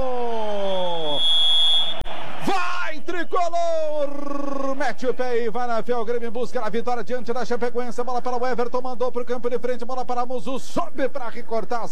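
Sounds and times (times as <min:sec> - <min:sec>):
referee's whistle starting the Grêmio vs Chapecoense football match: 0:00.1 - 0:03.8
speech: 0:03.4 - 0:11.9.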